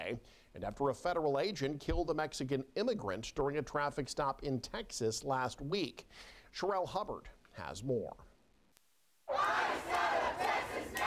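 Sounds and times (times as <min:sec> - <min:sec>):
speech: 0:00.0 - 0:08.3
protest crowd shouting and chanting: 0:09.3 - 0:11.0.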